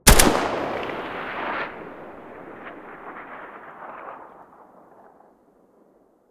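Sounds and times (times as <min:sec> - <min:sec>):
Galil rifle muzzle gunshot: 0:00.0 - 0:04.3.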